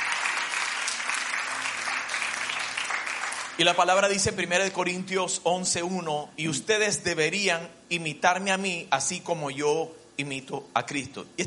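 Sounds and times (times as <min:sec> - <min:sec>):
audience applause: 0:00.0 - 0:03.6
speech: 0:03.6 - 0:11.4.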